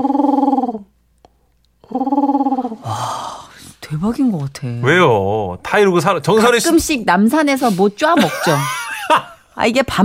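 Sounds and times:
voice imitating pigeon cooing: 0.0 - 1.0, 1.8 - 3.1
speech: 4.0 - 8.8, 9.6 - 10.0.

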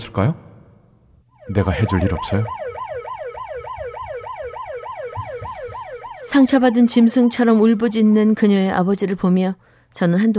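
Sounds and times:
speech: 0.1 - 0.4, 1.5 - 2.6, 6.3 - 10.3
police car siren: 1.3 - 9.0.

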